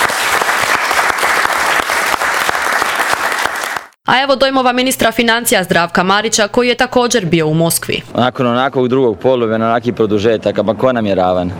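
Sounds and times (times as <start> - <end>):
applause from members of a government honouring the national football team: 0.0 - 4.0
speech: 4.1 - 11.5.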